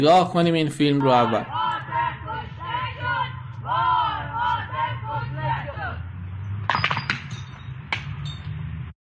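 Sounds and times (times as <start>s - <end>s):
speech: 0.0s - 1.6s
crowd chanting slogans together: 0.8s - 6.2s
sharp crashing and clinking bursts: 6.7s - 8.6s.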